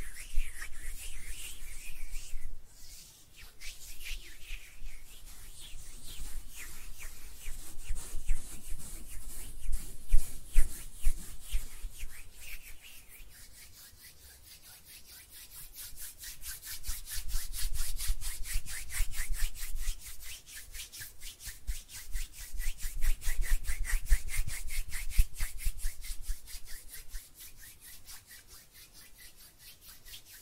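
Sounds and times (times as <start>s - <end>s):
hands rubbing together: 0.0s - 30.4s.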